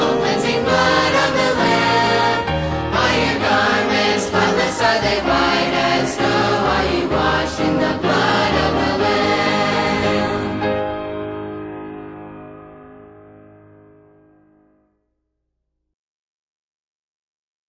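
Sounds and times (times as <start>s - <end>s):
teen choir: 0.0s - 11.5s.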